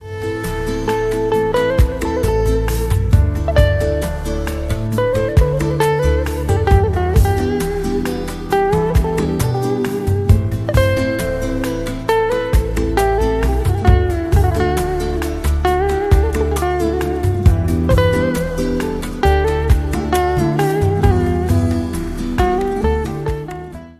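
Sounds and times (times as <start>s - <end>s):
Turkish music ringtone: 0.0s - 23.7s.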